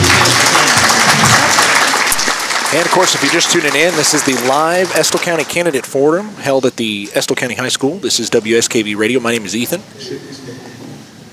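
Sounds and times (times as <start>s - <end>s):
audience applause at a county candidate forum in a high school: 0.0s - 6.3s
speech: 2.7s - 10.7s.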